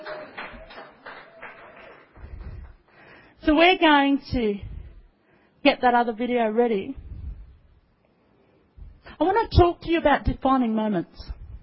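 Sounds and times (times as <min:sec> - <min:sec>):
audience clapping: 0:00.0 - 0:03.1
speech: 0:03.4 - 0:04.7, 0:05.6 - 0:07.0, 0:09.2 - 0:11.4.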